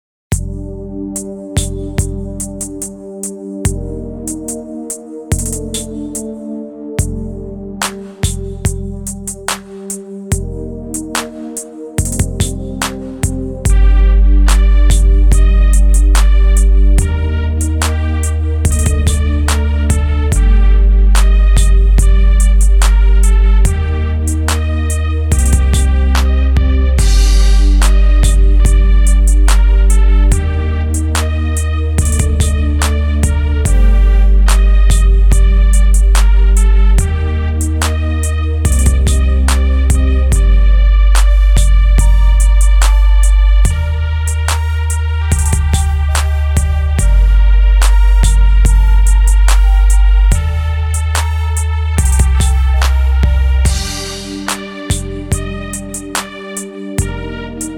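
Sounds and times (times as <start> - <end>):
trap beat: 0.3 - 57.7.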